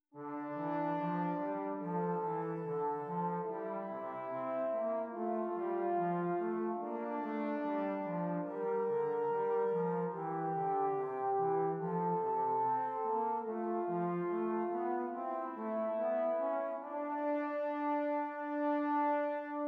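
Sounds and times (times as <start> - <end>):
two-voice counterpoint exercises: 0.2 - 19.6.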